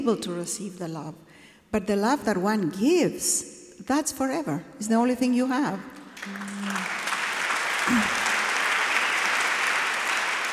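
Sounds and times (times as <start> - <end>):
speech: 0.0 - 6.8, 7.9 - 8.2
audience applause: 6.2 - 10.5.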